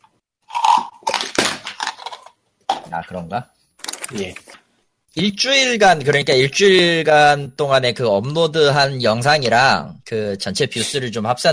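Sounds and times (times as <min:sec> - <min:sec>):
chocolate being bitten and chewed: 0:00.5 - 0:02.4
speech: 0:02.9 - 0:04.5, 0:05.1 - 0:11.5.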